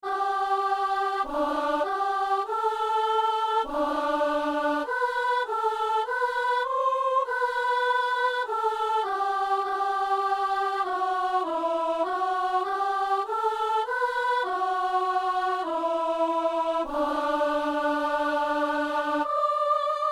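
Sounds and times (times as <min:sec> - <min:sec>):
soprano singing: 0:00.0 - 0:20.1.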